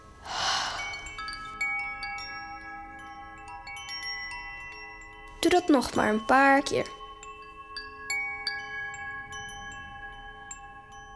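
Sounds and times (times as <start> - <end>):
slow breathing during a guided meditation: 0.2 - 1.5
speech: 5.4 - 7.0.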